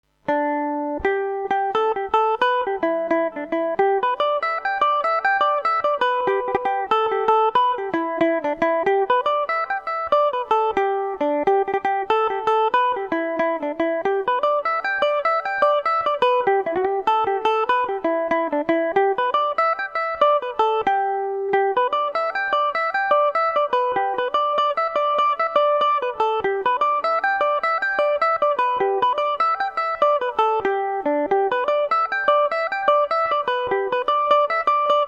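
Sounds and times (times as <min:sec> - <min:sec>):
mandolin haunted house tune in G major: 0:00.0 - 0:35.0.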